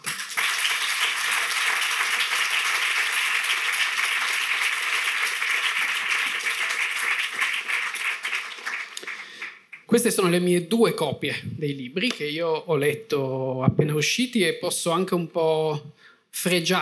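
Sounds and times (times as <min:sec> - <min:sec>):
audience applause: 0:00.0 - 0:09.9
speech: 0:09.9 - 0:16.7.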